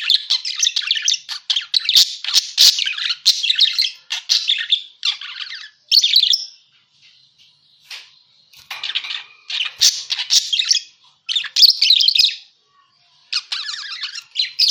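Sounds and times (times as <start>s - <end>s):
parakeet warbling chatter of buzzy chirps and squeaks: 0.0s - 6.4s, 8.7s - 12.4s, 13.3s - 14.6s.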